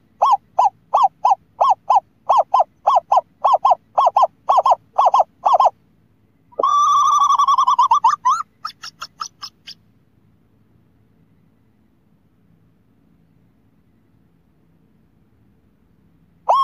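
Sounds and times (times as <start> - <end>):
scops owl hooting: 0.0 - 5.8, 6.5 - 9.8, 16.5 - 16.6.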